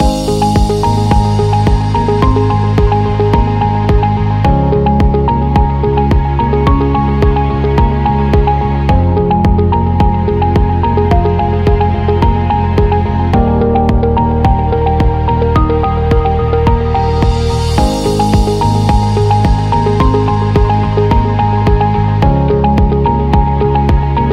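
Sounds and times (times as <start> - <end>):
minimal music loop: 0.0 - 24.3.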